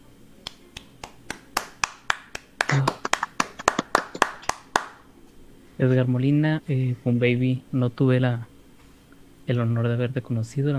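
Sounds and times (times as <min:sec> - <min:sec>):
applause: 0:01.0 - 0:05.0
speech: 0:02.7 - 0:03.0, 0:05.8 - 0:08.5, 0:09.5 - 0:10.7.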